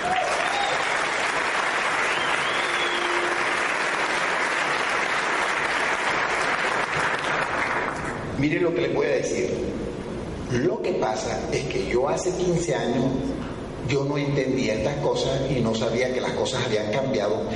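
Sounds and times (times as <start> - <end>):
faint whistles and cheers: 0.0 - 1.2, 1.9 - 3.6
audience applause: 0.0 - 8.2
speech: 8.4 - 9.8, 10.5 - 17.5.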